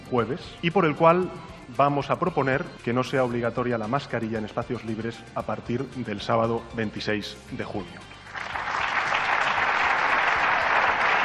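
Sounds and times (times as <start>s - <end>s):
speech: 0.1s - 8.1s
audience applauding: 8.3s - 11.2s.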